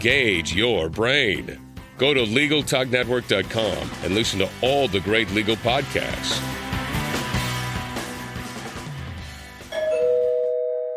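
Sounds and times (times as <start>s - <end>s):
speech: 0.0s - 6.6s
rhythmic music: 0.0s - 9.9s
two-note doorbell ding-dong: 9.7s - 10.9s.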